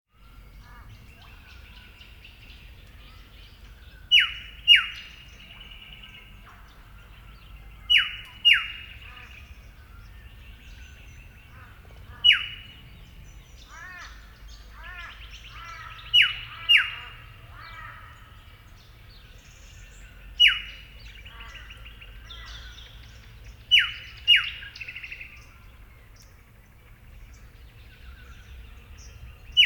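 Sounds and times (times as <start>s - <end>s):
Eastern yellow robin Eopsaltria australis calling: 0.2s - 29.6s.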